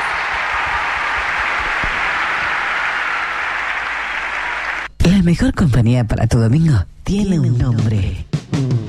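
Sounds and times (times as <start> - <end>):
audience applause: 0.0 - 4.9
speech: 5.2 - 8.7.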